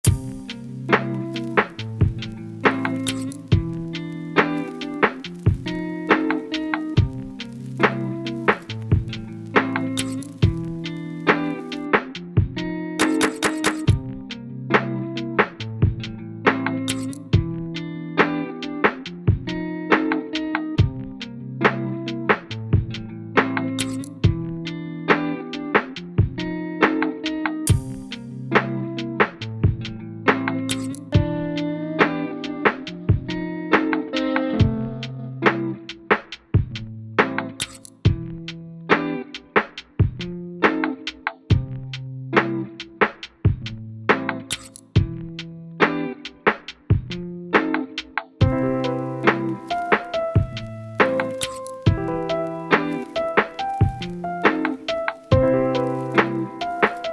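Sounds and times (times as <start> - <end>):
tender instrumental beat: 0.0 - 57.1.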